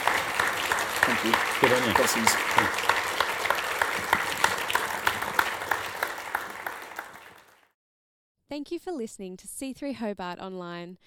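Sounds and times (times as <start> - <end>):
audience applause: 0.0 - 7.7
speech: 1.1 - 2.9, 8.5 - 11.0.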